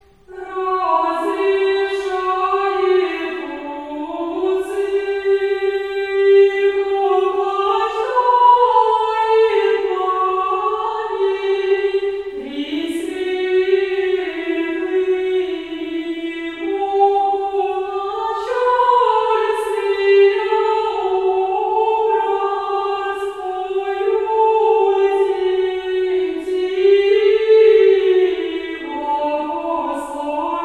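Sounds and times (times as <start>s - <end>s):
Orthodox Pentecost irmos choir singing: 0.0s - 30.6s.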